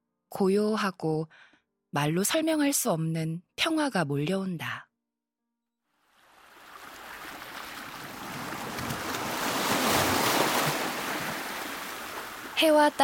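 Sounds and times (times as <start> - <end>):
speech: 0.3 - 4.9, 12.6 - 13.0
ocean waves breaking: 6.0 - 13.0.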